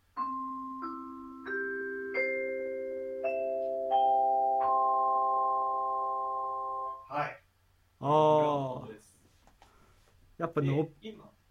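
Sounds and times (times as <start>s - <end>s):
vibraphone being played: 0.0s - 7.0s
speech: 8.0s - 8.2s, 10.5s - 11.3s.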